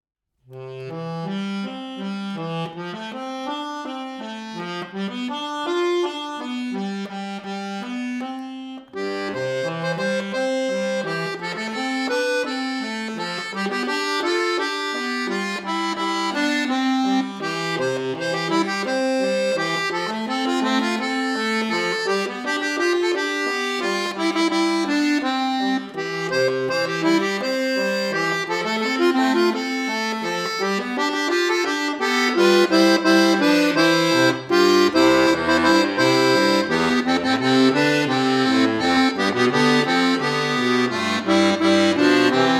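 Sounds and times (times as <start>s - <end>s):
instrumental music: 0.3s - 42.5s.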